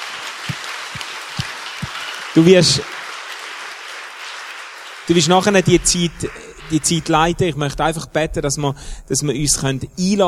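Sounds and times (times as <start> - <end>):
audience applause: 0.0 - 7.7
speech: 2.4 - 2.9, 5.1 - 10.2.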